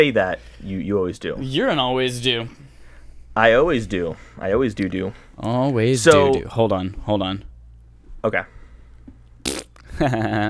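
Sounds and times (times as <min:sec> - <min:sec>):
speech: 0:00.0 - 0:02.6, 0:03.4 - 0:07.5, 0:08.2 - 0:08.6, 0:10.0 - 0:10.4
fart: 0:09.4 - 0:09.9.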